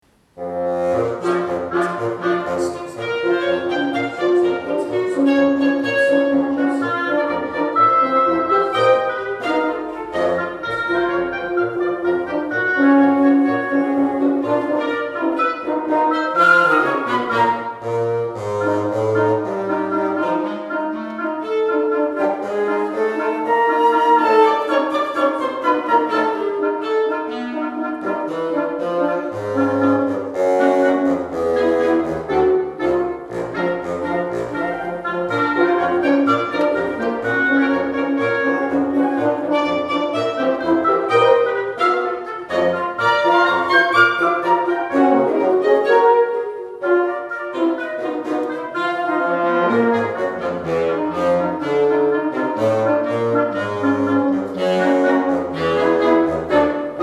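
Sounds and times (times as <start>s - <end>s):
polka music: 0.1s - 57.0s.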